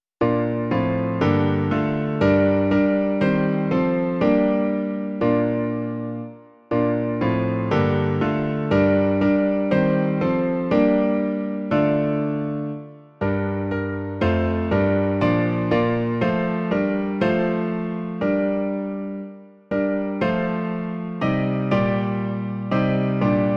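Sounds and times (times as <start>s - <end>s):
piano: 0.2s - 23.5s.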